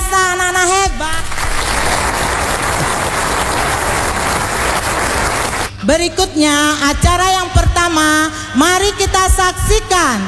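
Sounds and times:
audience applause for kindergarten children at a school event: 0:01.1 - 0:05.8
speech: 0:05.9 - 0:10.2.

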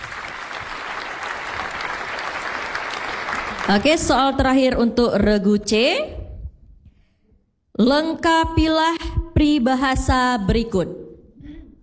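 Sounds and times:
audience applause: 0:00.0 - 0:04.0
speech: 0:03.7 - 0:06.2, 0:07.8 - 0:11.0.

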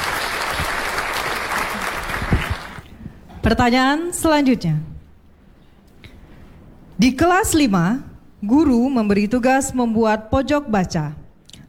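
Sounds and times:
applause: 0:00.0 - 0:02.8
speech: 0:03.5 - 0:04.9, 0:07.0 - 0:11.2.

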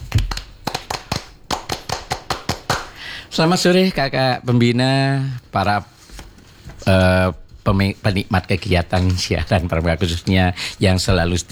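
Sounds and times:
hand claps in a scout rhythm: 0:00.0 - 0:03.1
speech: 0:03.4 - 0:05.9, 0:06.9 - 0:11.5.

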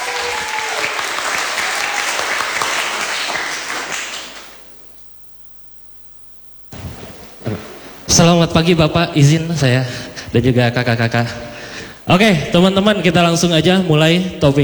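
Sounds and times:
audience applause: 0:00.0 - 0:04.8
speech: 0:08.2 - 0:11.5, 0:12.1 - 0:14.6.

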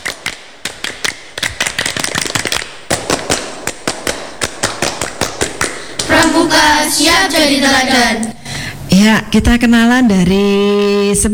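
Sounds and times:
group scout clapping pattern: 0:00.0 - 0:08.9
speech: 0:06.4 - 0:08.3, 0:09.0 - 0:11.3.

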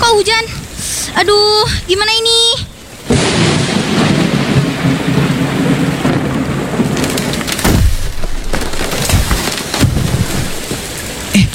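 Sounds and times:
speech: 0:00.2 - 0:02.7
tree falling down: 0:03.0 - 0:11.5.

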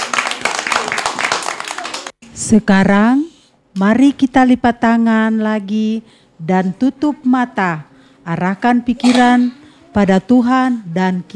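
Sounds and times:
group clapping hands: 0:00.0 - 0:02.2
speech: 0:02.4 - 0:11.3.

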